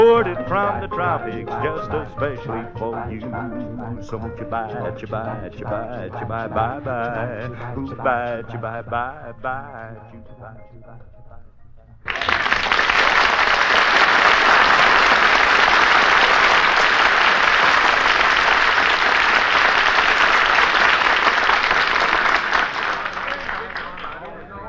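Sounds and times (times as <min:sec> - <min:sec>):
speech: 0:00.2 - 0:11.2
large crowd applause after a street song: 0:12.1 - 0:24.5.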